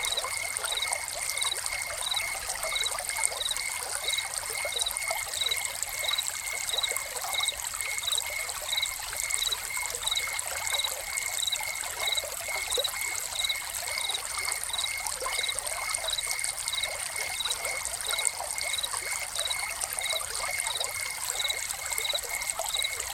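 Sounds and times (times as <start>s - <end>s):
cricket chirps: 0.0s - 23.1s
water splashing from a fountain: 0.0s - 23.1s.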